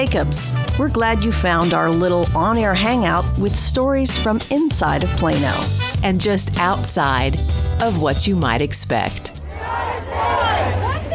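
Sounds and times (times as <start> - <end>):
speech: 0.0 - 9.4
rally crowd chanting: 9.4 - 11.1.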